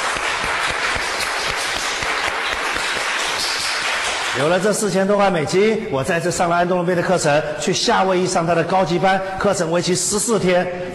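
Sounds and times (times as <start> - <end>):
audience applause: 0.0 - 4.7
speech: 4.4 - 10.9.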